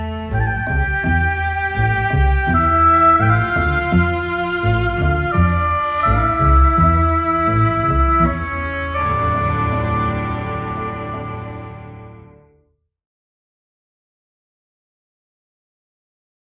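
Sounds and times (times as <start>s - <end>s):
cello: 0.0s - 12.7s
orchestra: 0.0s - 12.7s.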